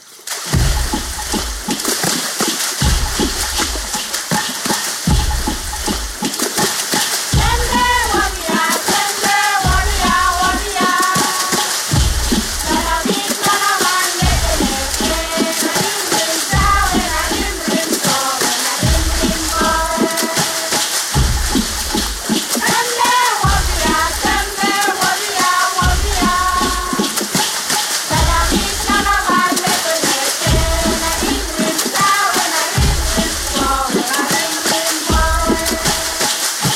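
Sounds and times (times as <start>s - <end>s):
Vanuatu women drumming on water: 0.0s - 36.7s
Vanuatu women singing: 7.4s - 20.9s, 22.6s - 27.2s, 28.1s - 36.5s.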